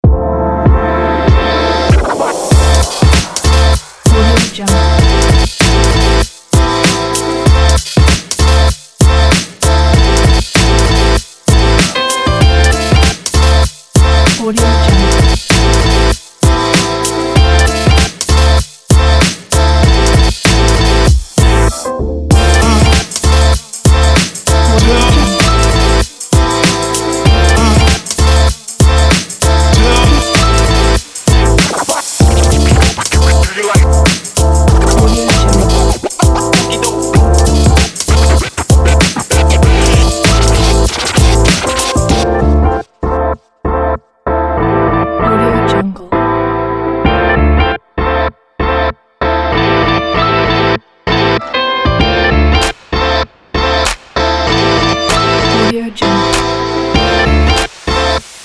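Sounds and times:
hip hop music: 0.0 - 58.4.

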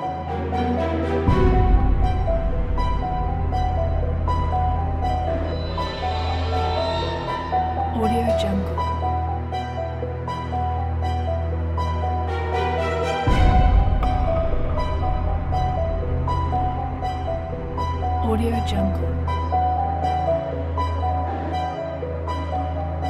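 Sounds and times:
suspense piano music: 0.0 - 23.0.

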